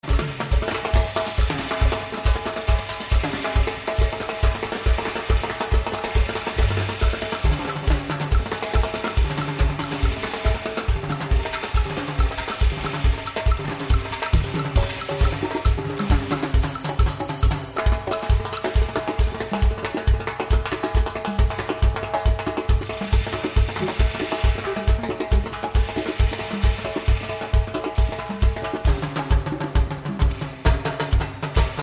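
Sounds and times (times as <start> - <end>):
percussion jam: 0.0 - 31.8.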